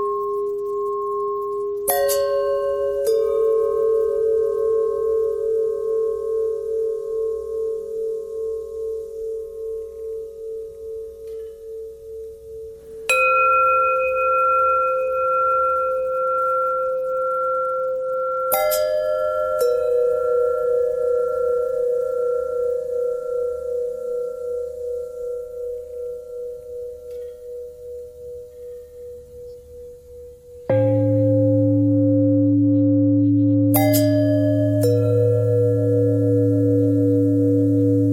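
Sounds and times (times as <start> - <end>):
long bending bell tones: 0.0 - 38.1.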